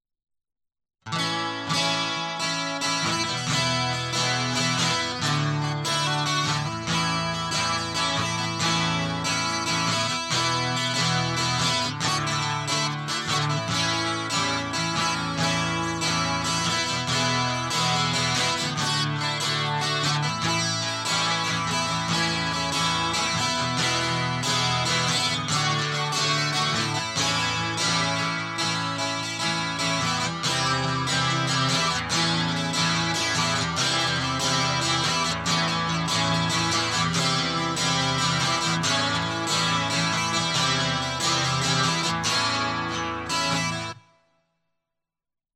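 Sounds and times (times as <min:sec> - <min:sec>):
guitar: 0:01.0 - 0:44.6.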